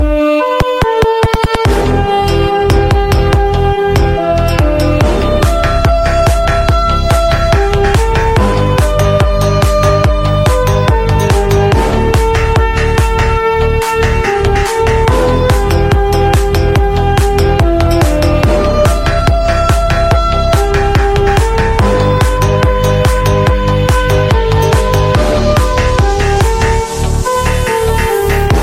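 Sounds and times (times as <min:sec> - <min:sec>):
TikTok remix music: 0:00.0 - 0:28.6.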